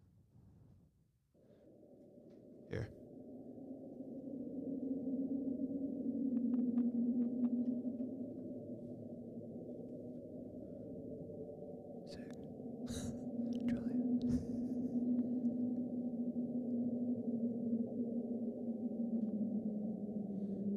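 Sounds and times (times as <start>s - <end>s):
speech: 2.7s - 3.0s
underwater ocean rumble recorded by NOAA hydrophones: 4.2s - 20.7s.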